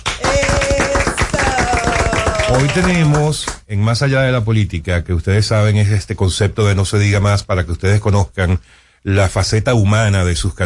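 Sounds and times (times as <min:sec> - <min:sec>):
applause: 0:00.0 - 0:03.6
speech: 0:02.5 - 0:10.6.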